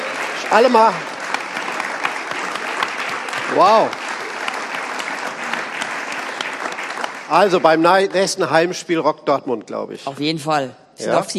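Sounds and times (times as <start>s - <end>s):
audience applause for lacrosse players: 0.0s - 8.7s
speech: 0.5s - 1.1s, 3.5s - 4.0s, 7.3s - 11.3s.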